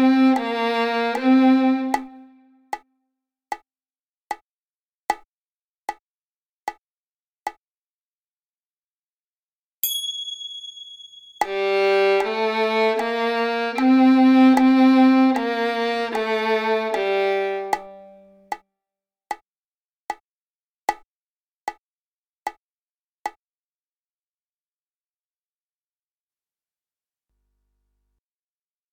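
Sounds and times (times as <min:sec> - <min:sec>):
violin played on the G string: 0:00.0 - 0:02.4, 0:11.4 - 0:18.4.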